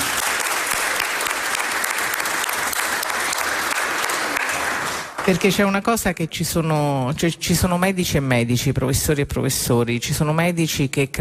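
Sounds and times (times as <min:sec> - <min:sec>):
audience applause: 0:00.0 - 0:05.7
speech: 0:05.3 - 0:11.1.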